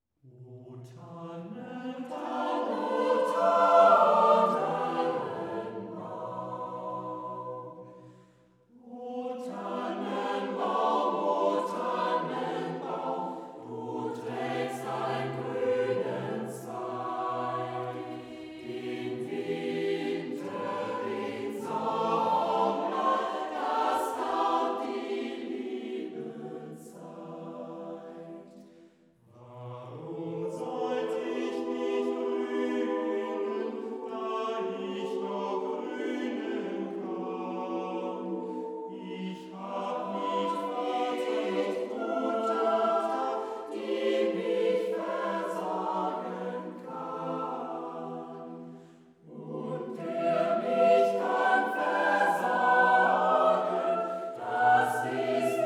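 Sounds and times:
choir singing German Christmas song: 0.2 - 55.6.

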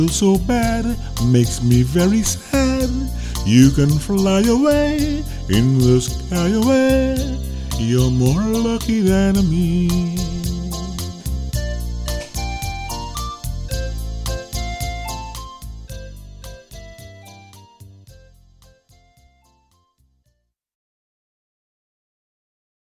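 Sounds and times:
person singing: 0.0 - 11.2
steel band steel drums playing: 0.0 - 19.4.

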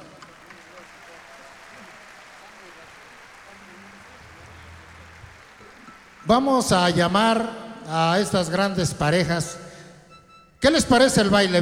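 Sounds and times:
audience applause: 0.0 - 7.4
speech: 6.3 - 9.6, 10.6 - 11.6.

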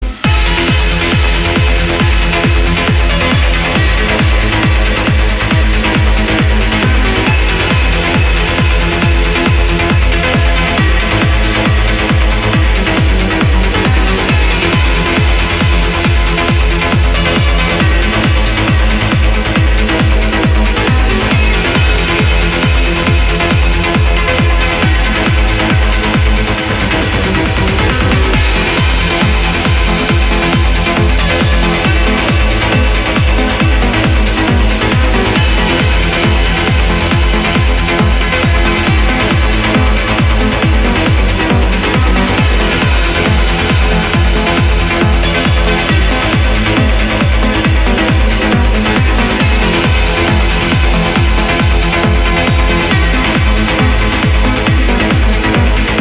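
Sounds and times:
trance music: 0.0 - 55.9.

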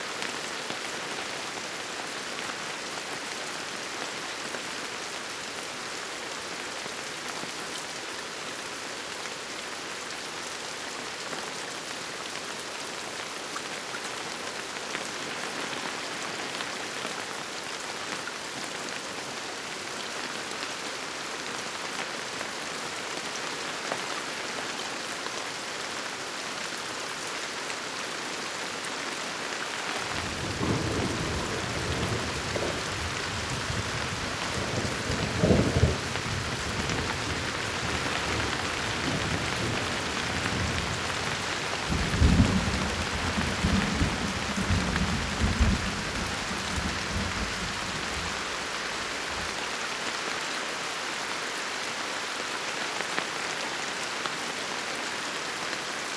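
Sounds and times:
rainfall: 0.0 - 56.1
powerful thunder: 30.1 - 37.2.

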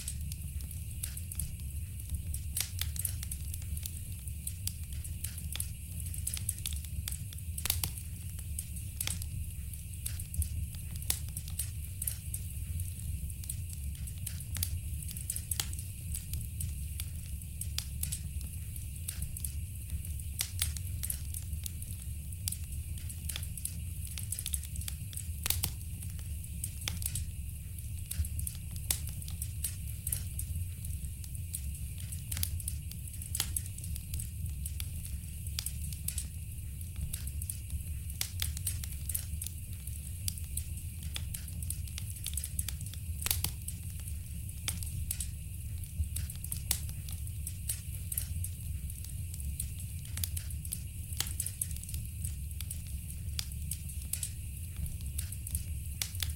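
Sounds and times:
fire burning in a fireplace: 0.0 - 56.3.

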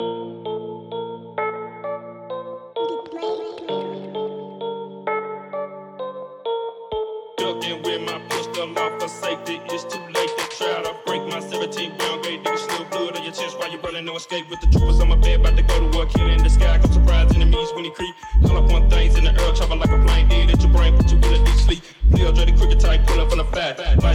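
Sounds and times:
Christmas phonk music: 7.4 - 24.1.

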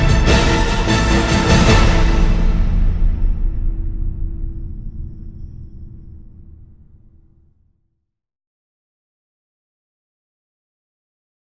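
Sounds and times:
epic music: 0.0 - 7.2.

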